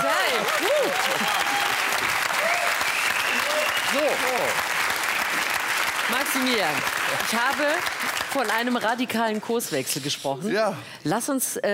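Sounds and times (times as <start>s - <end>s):
audience applause: 0.0s - 9.1s
speech: 6.3s - 11.7s.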